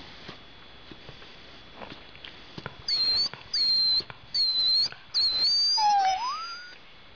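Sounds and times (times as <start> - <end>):
whale song: 4.4 - 6.8.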